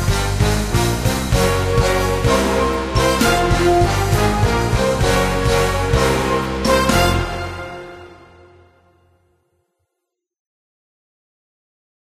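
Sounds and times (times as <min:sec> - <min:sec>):
full orchestra playing a medley: 0:00.0 - 0:08.9.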